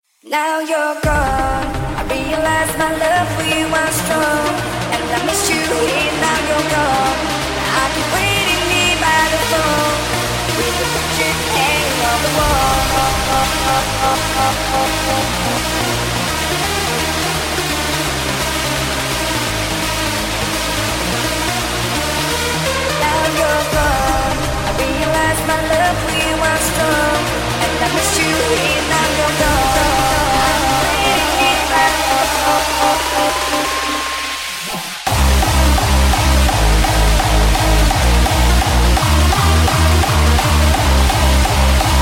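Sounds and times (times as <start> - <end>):
hardstyle remix: 1.0 - 42.0.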